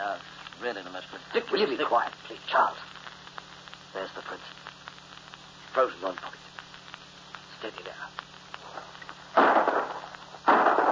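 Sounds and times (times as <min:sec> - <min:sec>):
faint hiss: 0:00.0 - 0:10.9
speech: 0:00.6 - 0:03.0, 0:03.9 - 0:04.6, 0:05.7 - 0:06.4, 0:07.6 - 0:08.2
gunshots fired while hunting a bird: 0:09.4 - 0:10.9.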